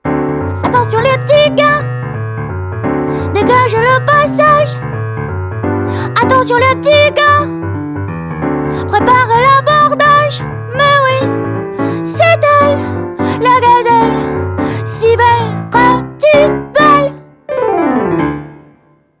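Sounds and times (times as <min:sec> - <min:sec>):
boogie music: 0:00.0 - 0:18.9.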